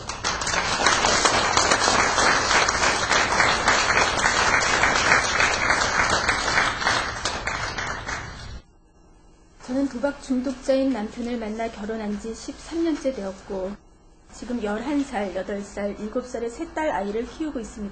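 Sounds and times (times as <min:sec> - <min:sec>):
audience applause: 0:00.0 - 0:08.6
speech: 0:10.0 - 0:17.9.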